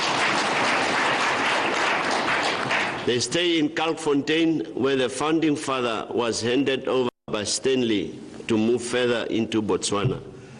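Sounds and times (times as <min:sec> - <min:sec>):
applause at a community event in Omaheke: 0:00.0 - 0:03.5
speech: 0:03.1 - 0:10.3.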